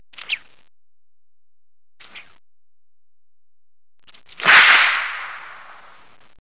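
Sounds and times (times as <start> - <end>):
whip crack: 4.4 - 6.0.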